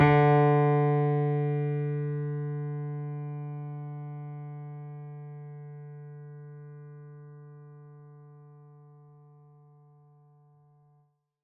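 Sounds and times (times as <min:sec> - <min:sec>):
mini grand piano: 0:00.0 - 0:07.6.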